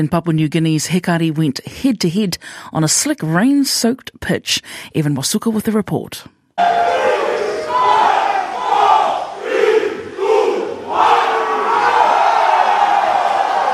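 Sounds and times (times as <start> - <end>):
speech: 0.0 - 7.0
soccer fans chanting in the stadium: 6.6 - 13.7.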